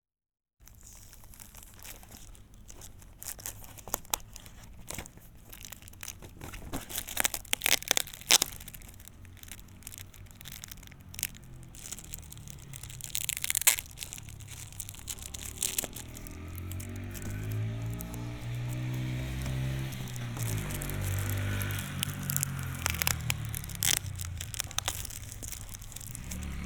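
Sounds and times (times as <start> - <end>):
bag of fireworks being opened: 0.6 - 26.6
motorbikes and cars passing: 8.6 - 26.6.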